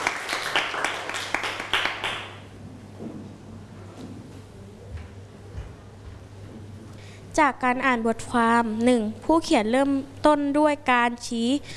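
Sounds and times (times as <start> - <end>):
students clapping: 0.0 - 2.5
speech: 7.4 - 11.7.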